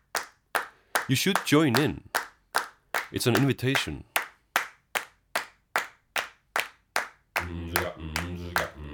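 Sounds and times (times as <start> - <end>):
rhythmic hand claps: 0.0 - 8.9
speech: 1.1 - 2.1, 3.1 - 4.1
sustained voices: 7.4 - 8.9.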